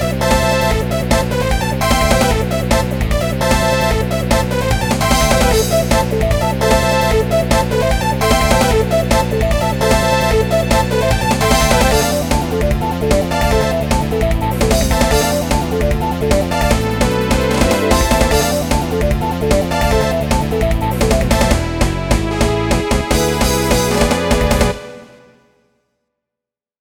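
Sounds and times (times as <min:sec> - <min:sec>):
game battle sounds: 0:00.0 - 0:25.1.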